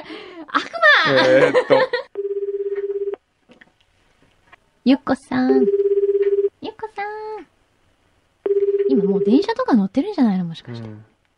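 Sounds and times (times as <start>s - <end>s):
speech: 0.5s - 2.0s, 4.8s - 5.8s, 9.0s - 11.1s
laughter: 0.6s - 2.1s
telephone keypad tones: 5.6s - 6.5s, 8.5s - 9.3s.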